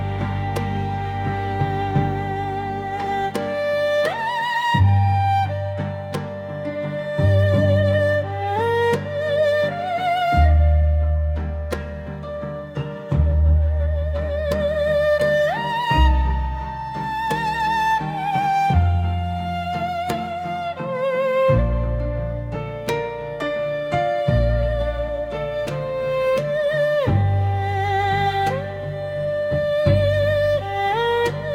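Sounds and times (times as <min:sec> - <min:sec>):
game background music outside the match: 0:00.0 - 0:31.5.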